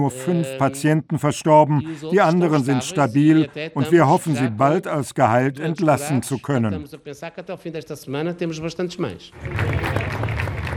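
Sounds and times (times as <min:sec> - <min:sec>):
speech: 0:00.0 - 0:10.0
applause: 0:09.4 - 0:10.7.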